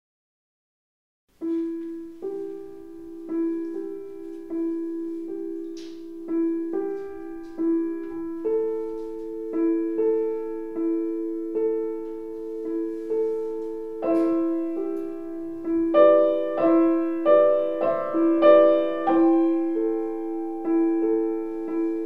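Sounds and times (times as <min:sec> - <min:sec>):
pianist playing a lullaby live at a piano recital: 0:01.3 - 0:22.0.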